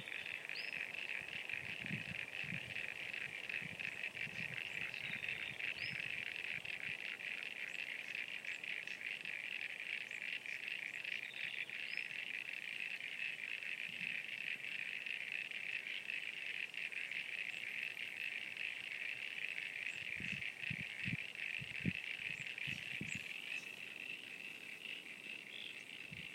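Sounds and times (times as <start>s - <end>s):
frog chorus trilling: 0.0s - 26.3s.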